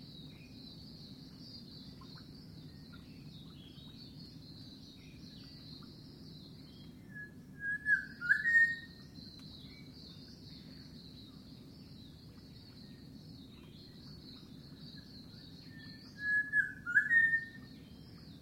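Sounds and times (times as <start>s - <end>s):
unidentified bird whistling in mangroves: 7.2s - 8.9s, 16.2s - 17.6s.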